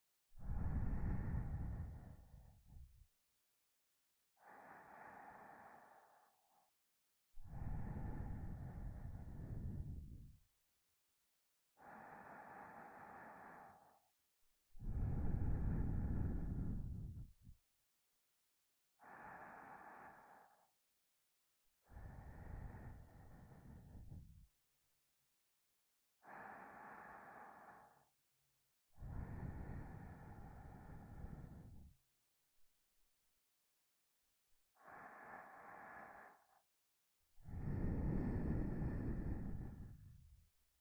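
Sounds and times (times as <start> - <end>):
sleeping breath in the left ear: 0.4 - 3.0, 4.3 - 6.8, 7.4 - 10.4, 11.7 - 14.2, 14.8 - 17.6, 18.9 - 20.8, 21.8 - 24.6, 26.2 - 28.3, 28.9 - 32.0, 33.8 - 40.7.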